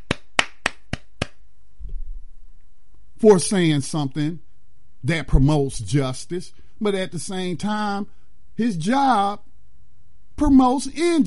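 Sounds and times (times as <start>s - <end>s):
sharp hand claps from a single pair of hands: 0.0s - 1.4s
speech: 3.2s - 4.4s, 5.0s - 9.5s, 10.4s - 11.2s.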